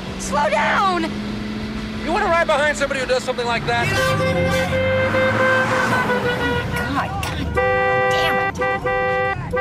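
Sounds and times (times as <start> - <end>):
speech: 0.3 - 1.3, 2.1 - 7.9
car horn honking in traffic: 2.7 - 9.6.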